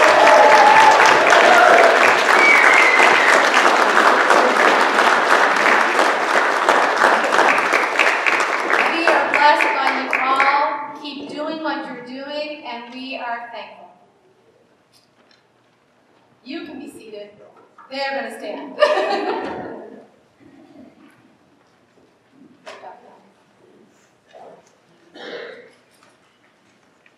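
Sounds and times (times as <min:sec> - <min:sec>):
church congregation at Trinity United Church, Summerside applauding the music director and choirs: 0:00.0 - 0:10.5
speech: 0:17.9 - 0:19.6
laughter: 0:18.8 - 0:20.1.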